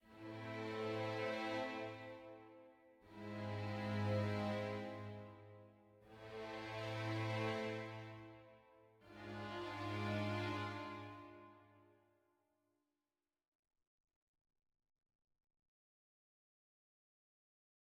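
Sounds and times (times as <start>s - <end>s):
sad music: 0.1s - 11.7s.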